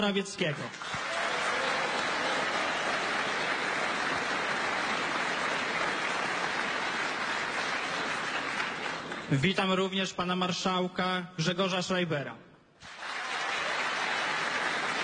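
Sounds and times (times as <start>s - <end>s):
speech: 0.0s - 1.1s, 9.3s - 12.5s
crowd applause welcoming the Polish prime minister: 0.5s - 9.4s, 12.8s - 15.0s.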